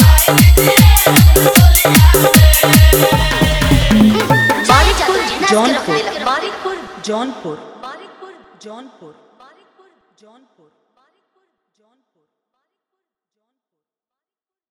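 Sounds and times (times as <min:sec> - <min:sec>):
Holi dholak dance mix with hard bass: 0:00.0 - 0:06.1.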